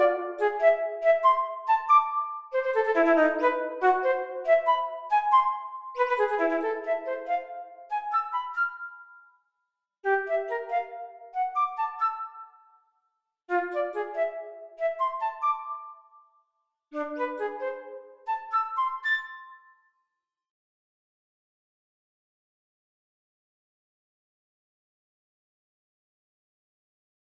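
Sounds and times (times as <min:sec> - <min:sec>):
flute playing a chaconne: 0:00.0 - 0:09.3, 0:10.1 - 0:12.7, 0:13.5 - 0:16.0, 0:17.0 - 0:19.7.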